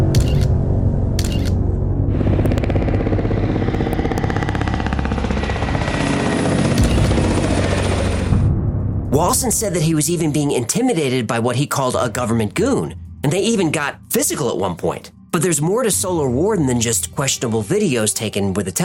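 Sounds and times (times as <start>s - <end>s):
sharp clicking bursts: 0.2s - 0.6s, 1.2s - 1.6s
helicopter flying close overhead: 1.2s - 8.5s
speech: 9.4s - 18.8s.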